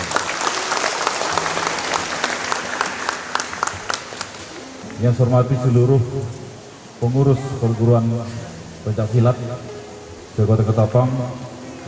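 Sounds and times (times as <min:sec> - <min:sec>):
audience applause: 0:00.0 - 0:05.0
speech: 0:05.0 - 0:06.4, 0:07.0 - 0:09.6, 0:10.4 - 0:11.5.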